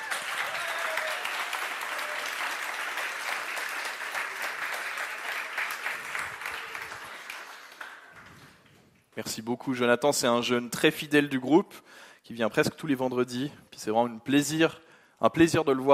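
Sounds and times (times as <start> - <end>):
audience applause: 0.0 - 8.7
speech: 9.2 - 15.9.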